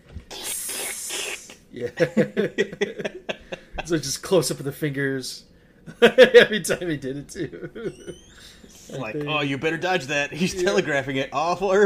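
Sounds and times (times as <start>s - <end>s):
snake strike hiss sound effect: 0.3s - 1.6s
laughter: 1.8s - 4.0s, 5.9s - 8.4s
speech: 1.8s - 11.8s.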